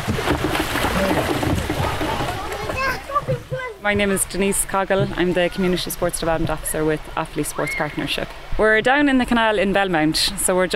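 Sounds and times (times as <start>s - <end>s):
kayak paddles splashing canal water: 0.0s - 9.0s
children chattering: 1.8s - 4.4s, 5.0s - 6.1s
speech: 3.8s - 10.7s.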